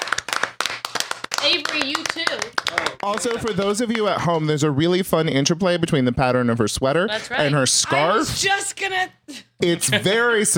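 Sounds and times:
audience applause: 0.0 - 4.1
speech: 1.4 - 10.5.

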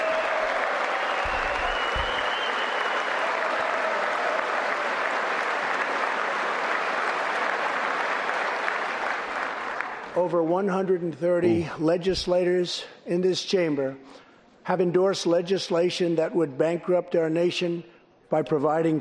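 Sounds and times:
large audience applauding in a chamber: 0.0 - 10.1
speech: 10.2 - 19.0.

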